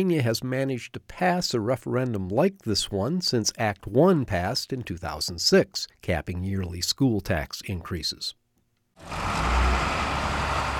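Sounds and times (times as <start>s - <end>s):
speech: 0.0s - 8.4s, 9.0s - 9.5s
engines of a line of yellow school buses rumbling at State High: 9.0s - 10.7s.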